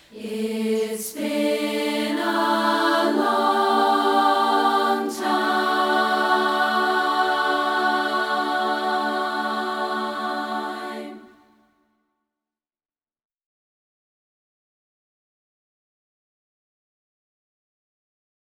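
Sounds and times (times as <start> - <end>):
a cappella singing: 0.0 - 11.6.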